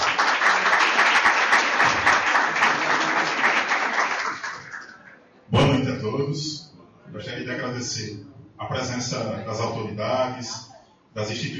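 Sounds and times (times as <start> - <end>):
crowd applauding: 0.0 - 5.2
speech: 6.1 - 11.5.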